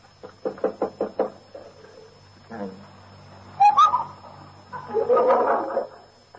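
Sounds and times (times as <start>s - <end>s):
knocking on a door: 0.4s - 1.4s
laughter: 4.7s - 6.2s.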